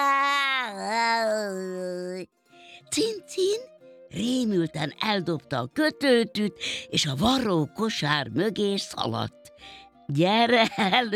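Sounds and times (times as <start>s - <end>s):
human voice imitating a cat's meow: 0.0s - 2.3s
speech: 2.9s - 11.1s.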